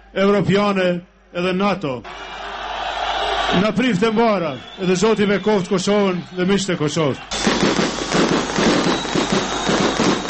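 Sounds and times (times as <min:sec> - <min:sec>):
speech: 0:00.1 - 0:02.3, 0:03.5 - 0:08.4
fireworks exploding at a welcome-home celebration in Kosovo: 0:07.3 - 0:10.2.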